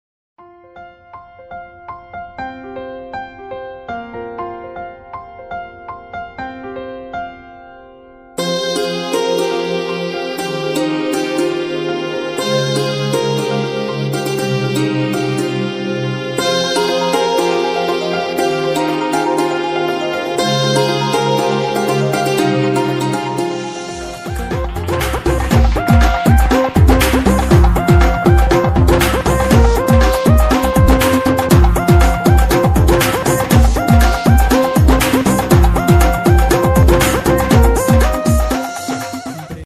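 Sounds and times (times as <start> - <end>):
Christian wedding music ringtone: 8.4 - 39.6.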